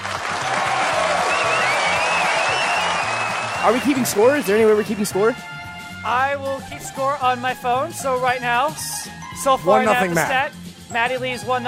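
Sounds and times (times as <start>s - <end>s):
applause from a group: 0.0s - 5.1s
speech: 3.6s - 11.6s.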